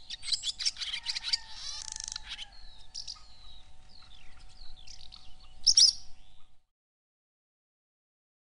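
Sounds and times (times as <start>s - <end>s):
barn swallow cheerful chattering and creaky twittering: 0.0s - 6.6s.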